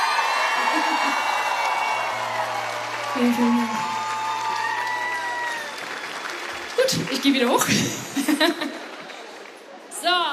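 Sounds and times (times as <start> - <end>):
audience in Straubing whooping and shouting: 0.0 - 7.1
audience in Straubing clapping: 0.0 - 9.9
laughter: 0.6 - 1.6, 7.8 - 9.1
speech: 0.7 - 1.4, 3.2 - 3.9, 6.9 - 8.8.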